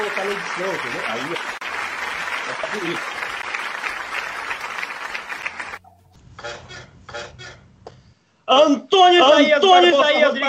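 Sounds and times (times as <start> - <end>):
applause: 0.0 - 5.8
rhythmic bursts of clapping-like noise: 0.0 - 5.8
speech: 0.2 - 1.7, 2.5 - 3.2, 8.5 - 10.4.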